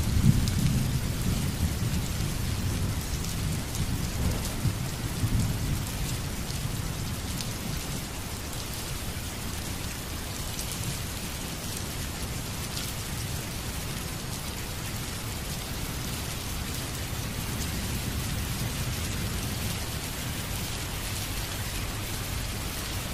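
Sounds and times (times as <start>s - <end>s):
thunder: 0.0s - 6.0s
rain: 0.0s - 23.1s.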